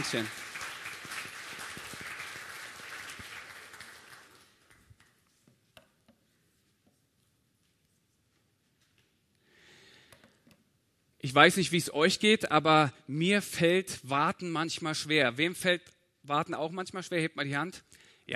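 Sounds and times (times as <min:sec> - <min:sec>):
speech: 0:00.0 - 0:00.4, 0:11.3 - 0:18.3
audience clapping: 0:00.0 - 0:05.4.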